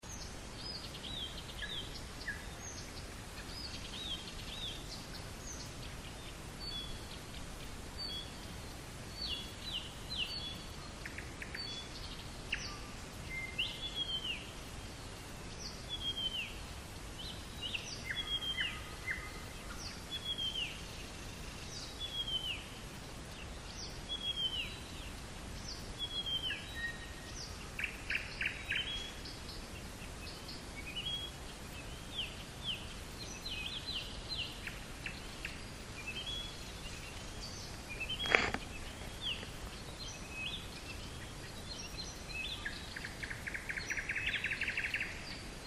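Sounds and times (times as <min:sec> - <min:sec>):
birds singing at night: 0:00.0 - 0:45.6.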